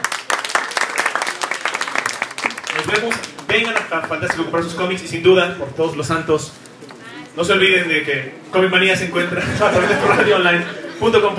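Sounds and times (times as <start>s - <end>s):
audience applause at a talk about comics: 0.0s - 4.7s
speech: 2.8s - 6.7s, 7.4s - 11.3s
laughter: 9.2s - 11.3s.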